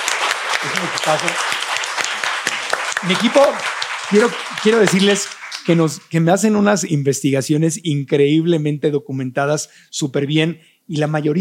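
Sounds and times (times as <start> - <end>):
applause: 0.0 - 6.2
speech: 0.6 - 1.6, 3.0 - 11.3.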